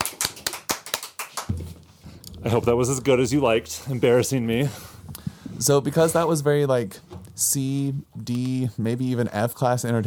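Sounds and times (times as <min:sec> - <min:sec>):
small group applause: 0:00.0 - 0:01.5
speech: 0:02.4 - 0:05.0, 0:05.6 - 0:10.0.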